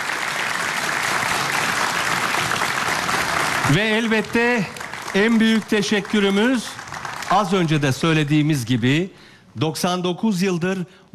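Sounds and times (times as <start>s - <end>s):
audience applause: 0.0s - 8.1s
speech: 3.6s - 11.1s.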